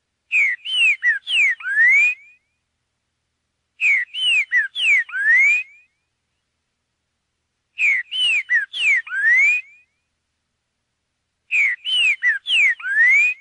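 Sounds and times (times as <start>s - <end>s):
green-winged saltator song: 0.3s - 2.6s, 3.8s - 6.1s, 7.8s - 10.1s, 11.5s - 13.4s.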